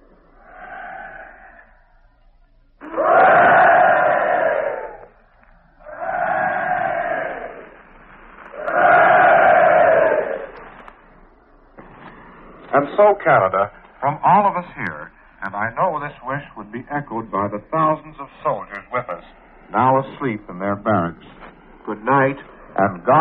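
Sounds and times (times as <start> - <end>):
ratings of each ship cheering in the distance: 0.0 - 23.2
speech: 12.9 - 23.2.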